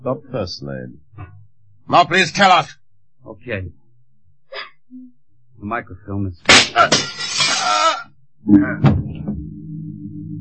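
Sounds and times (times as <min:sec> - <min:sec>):
speech: 0:00.0 - 0:01.1, 0:01.9 - 0:03.8, 0:05.6 - 0:07.8, 0:08.4 - 0:09.5
revolver shot fired from outside through a window: 0:06.5 - 0:07.2
window glass breaking: 0:06.5 - 0:08.0.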